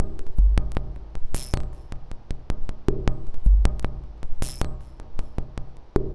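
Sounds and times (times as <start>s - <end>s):
modular synth percussion loop: 0.0s - 2.1s, 2.9s - 5.6s.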